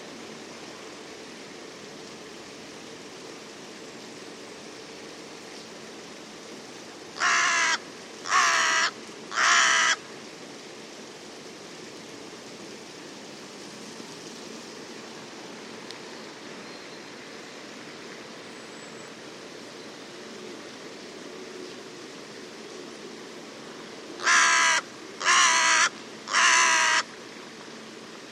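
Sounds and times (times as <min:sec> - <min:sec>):
bird cawing: 0:07.2 - 0:10.0, 0:24.2 - 0:27.1.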